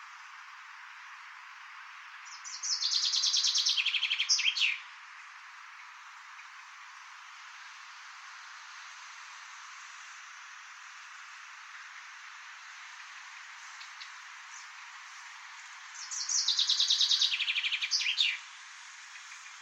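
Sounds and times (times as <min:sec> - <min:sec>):
Chaffinch song: 0:02.1 - 0:04.9, 0:11.2 - 0:19.6.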